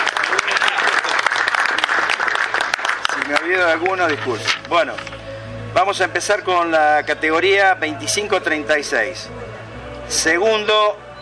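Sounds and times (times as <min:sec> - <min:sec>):
audience applause at a golf tournament awards ceremony: 0:00.0 - 0:03.9
speech: 0:03.3 - 0:05.2, 0:05.8 - 0:09.4, 0:10.1 - 0:11.1.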